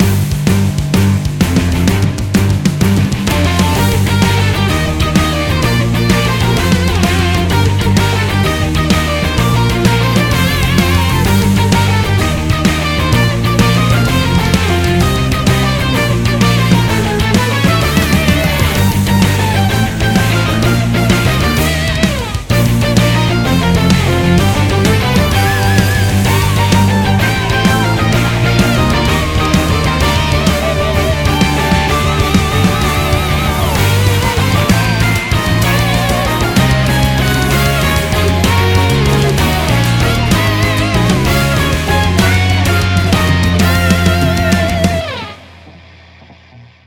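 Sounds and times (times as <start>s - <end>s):
rock background music: 0.0s - 46.8s.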